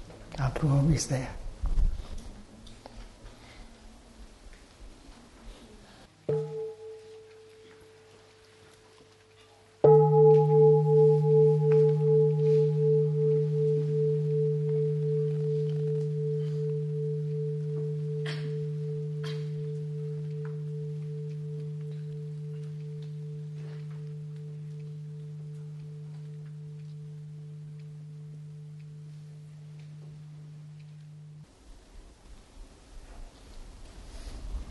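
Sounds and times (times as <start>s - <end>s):
speech: 0.4s - 1.4s
mindfulness bell ringing: 6.3s - 8.1s, 9.8s - 31.4s.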